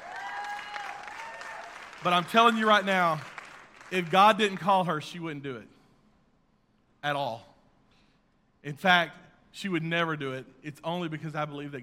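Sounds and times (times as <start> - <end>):
audience applause: 0.0 - 4.7
speech: 2.0 - 3.3, 3.9 - 5.8, 7.0 - 7.5, 8.6 - 11.8.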